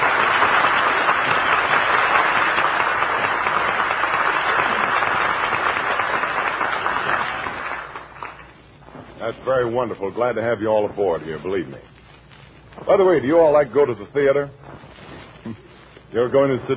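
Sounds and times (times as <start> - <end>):
audience applause: 0.0 - 8.7
speech: 9.5 - 11.9, 12.9 - 14.6, 15.4 - 16.7.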